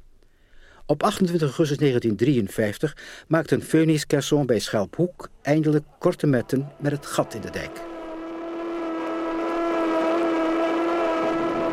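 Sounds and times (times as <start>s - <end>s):
speech: 0.9s - 7.9s
tugboat sirens sounding over the water: 6.0s - 11.7s.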